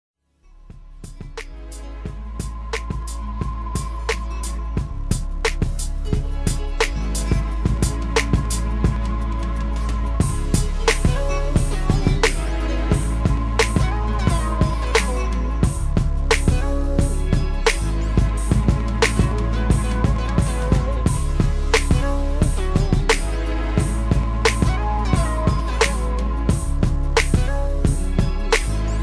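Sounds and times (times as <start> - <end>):
mellow beat: 0.6 - 29.0.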